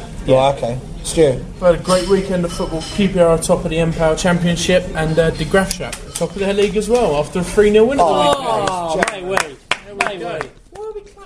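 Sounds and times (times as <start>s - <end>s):
speech: 0.2s - 9.5s
hands clapping: 8.2s - 11.0s.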